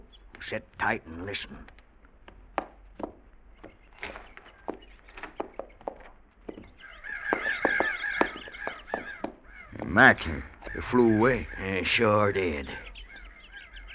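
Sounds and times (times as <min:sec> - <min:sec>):
sharp knocking: 0:00.0 - 0:10.9
crows cawing in overlapping chorus: 0:00.0 - 0:13.9
speech: 0:00.4 - 0:01.8, 0:10.0 - 0:12.8.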